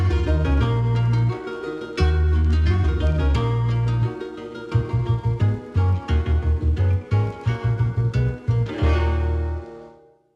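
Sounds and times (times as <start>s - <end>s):
country-sounding music: 0.0s - 10.1s
Asian sound effects: 8.7s - 10.2s.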